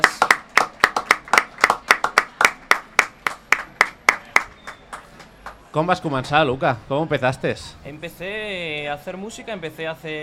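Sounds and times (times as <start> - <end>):
audience hand claps: 0.0 - 5.6
speech: 5.8 - 10.2.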